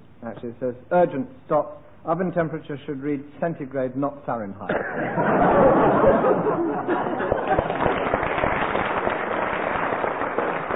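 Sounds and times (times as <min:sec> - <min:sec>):
speech: 0:00.2 - 0:07.4
laughter: 0:04.7 - 0:08.0
audience applause: 0:06.8 - 0:10.7.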